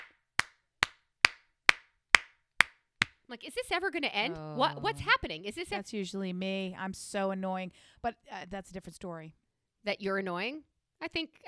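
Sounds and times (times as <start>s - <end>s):
loud hand claps: 0.0s - 3.2s
speech: 3.3s - 11.4s.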